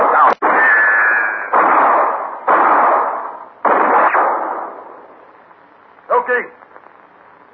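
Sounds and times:
gunfire in a standoff: 0.0s - 5.2s.

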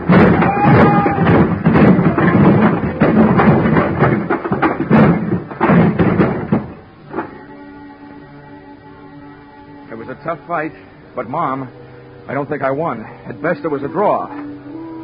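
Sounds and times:
pile of wooden boxes crashing down: 0.0s - 7.5s
speech: 10.3s - 14.4s.

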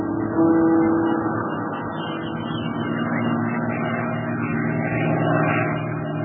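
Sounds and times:
scouting propeller plane engine: 0.1s - 6.2s.

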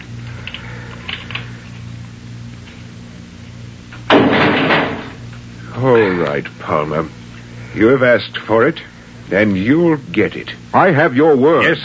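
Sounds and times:
low mechanical hum: 0.0s - 11.8s
jail door slamming shut: 4.1s - 5.2s
speech: 5.8s - 11.8s.

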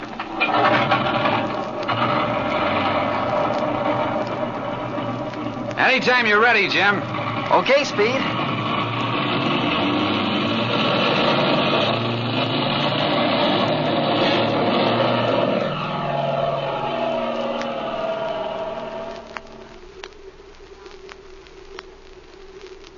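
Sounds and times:
propeller airplane engine roaring as the plane takes off: 0.4s - 18.7s
speech: 5.8s - 8.4s.

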